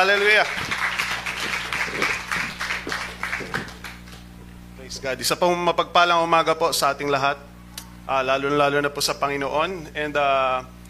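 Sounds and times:
speech: 0:00.0 - 0:00.8, 0:01.4 - 0:02.3, 0:04.9 - 0:07.5, 0:08.1 - 0:10.8
church congregation applauding: 0:00.0 - 0:04.3
low steady hum: 0:00.0 - 0:10.8.

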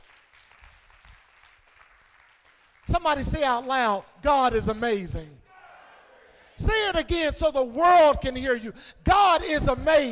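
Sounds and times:
audience clapping hands: 0:00.0 - 0:03.2
speech: 0:03.0 - 0:05.4, 0:06.6 - 0:10.1.

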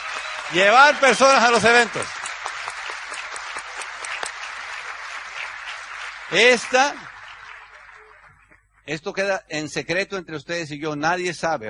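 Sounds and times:
audience applause: 0:00.0 - 0:08.6
speech: 0:00.5 - 0:02.2, 0:06.3 - 0:07.1, 0:08.8 - 0:11.6.

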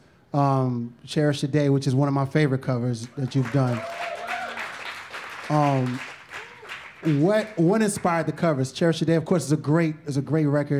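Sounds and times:
speech: 0:00.3 - 0:04.1, 0:05.5 - 0:06.2, 0:07.0 - 0:10.7
audience applause: 0:03.0 - 0:07.6
person whooping: 0:03.6 - 0:04.8, 0:06.3 - 0:06.9.

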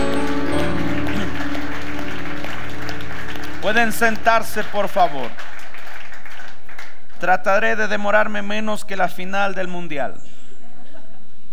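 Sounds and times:
audience applause: 0:00.0 - 0:07.2
speech: 0:03.7 - 0:05.6, 0:07.2 - 0:10.4.

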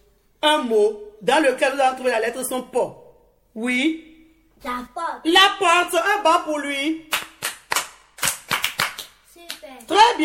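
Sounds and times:
speech: 0:00.4 - 0:03.0, 0:03.6 - 0:07.1, 0:09.8 - 0:10.2
group of children clapping in a rhythmic cheer: 0:07.1 - 0:09.9.

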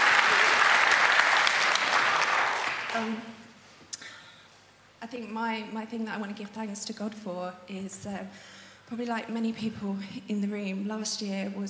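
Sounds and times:
audience applause: 0:00.0 - 0:03.4
speech: 0:03.0 - 0:03.4, 0:05.0 - 0:11.6.

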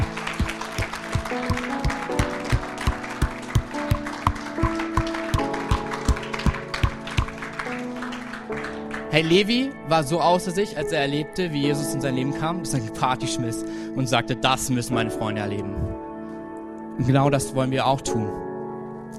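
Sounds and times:
crowd clapping in rhythm: 0:00.0 - 0:09.6
music with sustained tones: 0:00.0 - 0:19.1
speech: 0:09.2 - 0:16.0, 0:17.0 - 0:18.5.

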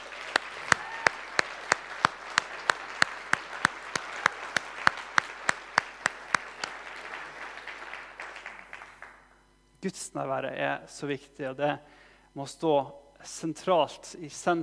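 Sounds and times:
audience applause: 0:00.0 - 0:09.3
soft constant noise: 0:00.0 - 0:14.6
speech: 0:09.8 - 0:14.6.

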